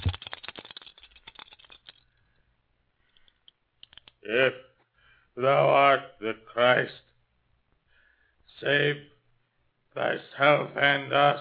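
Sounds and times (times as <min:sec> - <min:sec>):
dice rattling in a cup: 0:00.0 - 0:02.1
speech: 0:04.3 - 0:04.7, 0:05.4 - 0:07.1, 0:08.6 - 0:09.1, 0:10.0 - 0:11.3.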